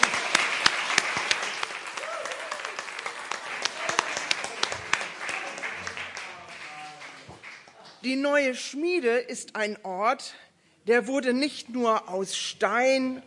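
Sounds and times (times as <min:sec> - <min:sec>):
audience clapping: 0:00.0 - 0:08.2
speech: 0:08.0 - 0:13.2.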